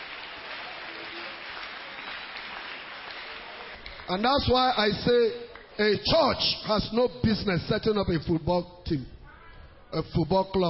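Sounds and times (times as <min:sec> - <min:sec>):
crowd clapping: 0:00.0 - 0:05.9
speech: 0:04.1 - 0:09.2, 0:09.9 - 0:10.6.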